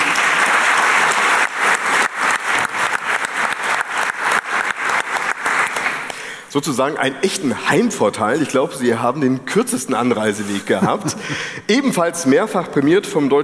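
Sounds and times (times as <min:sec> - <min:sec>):
audience applause: 0:00.0 - 0:06.2
speech: 0:06.5 - 0:13.4
laughter: 0:10.4 - 0:11.6.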